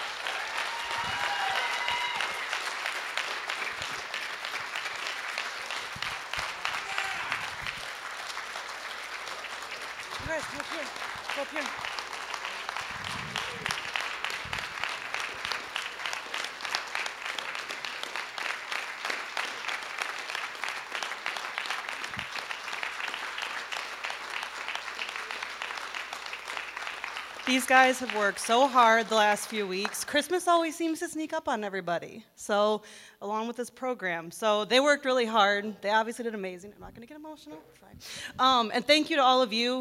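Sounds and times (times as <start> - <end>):
audience applause: 0.0 - 30.2
speech: 10.3 - 11.9, 27.5 - 39.7.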